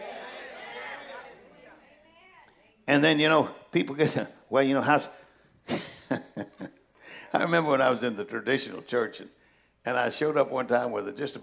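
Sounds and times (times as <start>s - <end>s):
crowd murmuring in agreement: 0.0s - 2.2s
speech: 2.9s - 5.9s, 7.3s - 11.4s.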